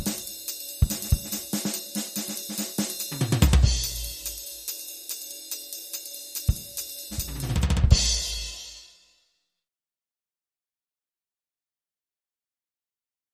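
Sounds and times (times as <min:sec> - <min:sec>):
stereo jazz drum kit loop: 0:00.0 - 0:08.8.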